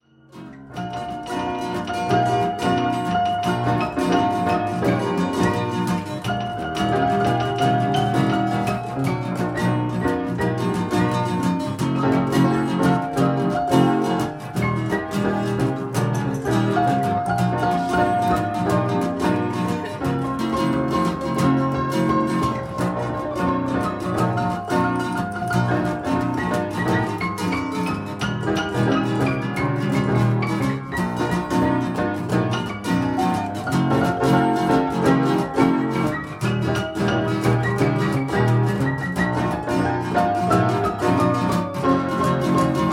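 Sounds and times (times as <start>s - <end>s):
trio playing boogie blues: 0.4s - 42.9s.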